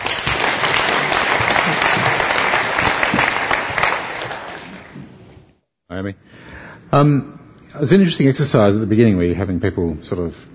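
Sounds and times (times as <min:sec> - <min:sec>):
audience applause: 0:00.0 - 0:05.0
speech: 0:06.0 - 0:06.3, 0:06.9 - 0:10.5.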